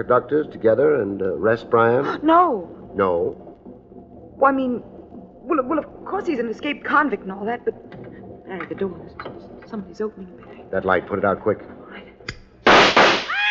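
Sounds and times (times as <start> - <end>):
speech: 0.0 - 3.4, 4.4 - 4.9, 5.5 - 11.8
gunshots fired in the dark: 12.6 - 13.4.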